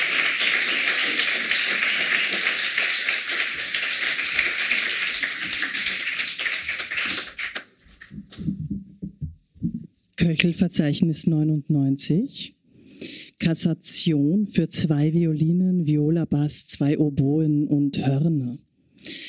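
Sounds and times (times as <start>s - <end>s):
audience applause: 0.0s - 8.1s
speech: 10.3s - 12.6s, 13.4s - 18.7s.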